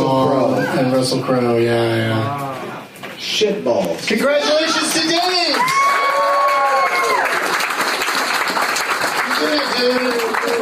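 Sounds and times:
speech: 0.8s - 2.5s, 3.2s - 5.8s
audience applause: 4.1s - 10.6s
whoops and shouted cheers: 4.5s - 7.4s.

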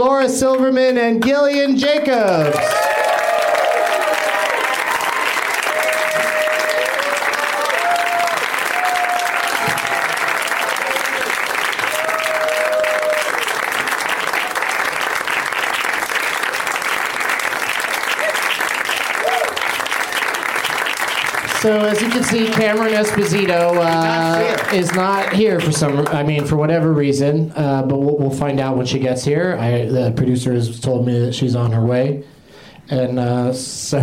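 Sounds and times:
speech: 0.0s - 2.8s, 21.6s - 32.3s, 32.9s - 34.0s
audience applause welcoming guests: 2.2s - 26.5s.

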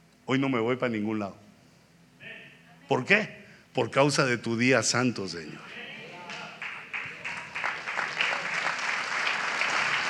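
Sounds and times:
speech: 0.3s - 1.4s, 2.9s - 5.8s
audience applause: 6.2s - 10.0s.

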